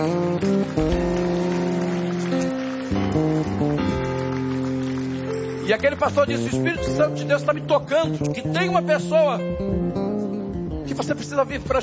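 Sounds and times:
applause: 0:00.0 - 0:07.0
speech: 0:05.7 - 0:09.8, 0:11.0 - 0:11.8.

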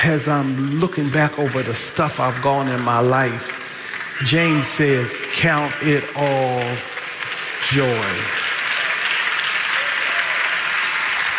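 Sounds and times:
speech: 0:00.0 - 0:03.6, 0:04.2 - 0:06.9, 0:07.6 - 0:08.4
audience clapping: 0:00.0 - 0:11.3.

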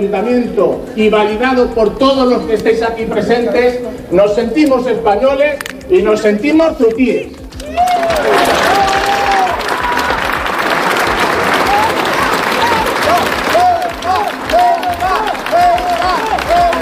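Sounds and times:
speech: 0:00.0 - 0:08.8
rally crowd shouting: 0:07.7 - 0:16.8.

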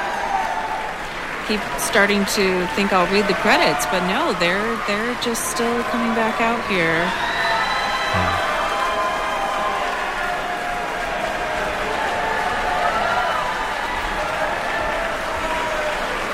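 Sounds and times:
scattered cheers and whoops: 0:00.0 - 0:01.1, 0:02.4 - 0:16.3
orchestra concert audience applauding: 0:00.0 - 0:16.3
speech: 0:01.5 - 0:07.4.

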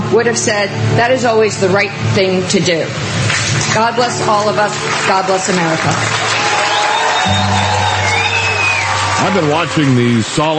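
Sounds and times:
low droning hum: 0:00.0 - 0:09.6
speech: 0:00.1 - 0:06.2, 0:09.2 - 0:10.5
audience applauding and cheering at ceremony: 0:03.2 - 0:10.5.

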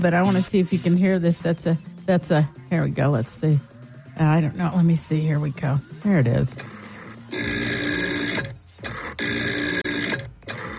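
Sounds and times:
speech: 0:00.0 - 0:06.7
rotary dial telephone sound from an app: 0:06.3 - 0:10.7.

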